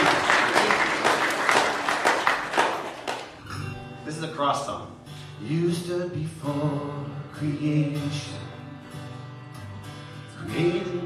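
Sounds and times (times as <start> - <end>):
audience clapping: 0.0 - 3.4
speech: 4.4 - 8.4.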